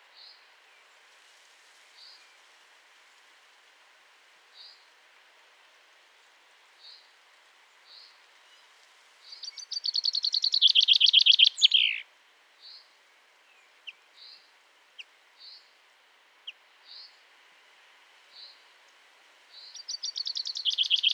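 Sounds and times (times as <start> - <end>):
common chaffinch call: 10.3 - 12.0, 19.9 - 21.1.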